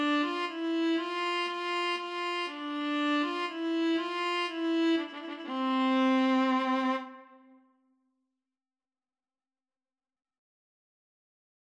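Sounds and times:
violas playing a minuet: 0.0 - 7.4.

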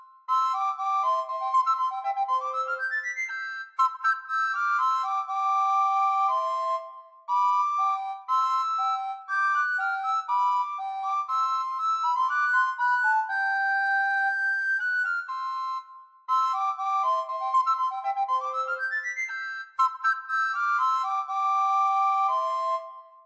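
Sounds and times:
recorder duet: 0.3 - 23.0.

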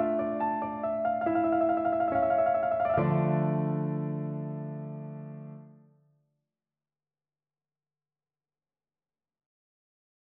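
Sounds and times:
gavotte played on piano: 0.0 - 5.8.

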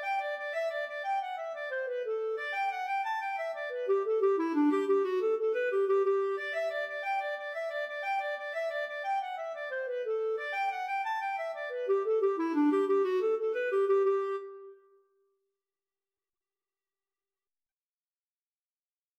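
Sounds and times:
clarinet duet playing an Irish jig medley: 0.0 - 14.8.

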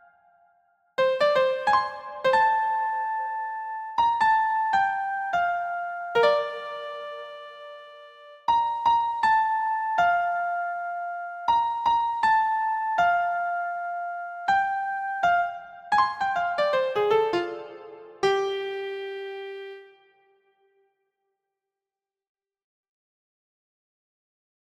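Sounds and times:
jazzy tune on keyboard: 1.0 - 20.0.

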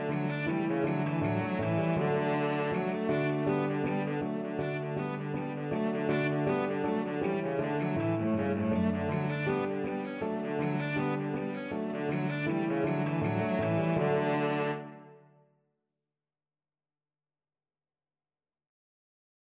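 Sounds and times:
cello: 0.0 - 15.3.

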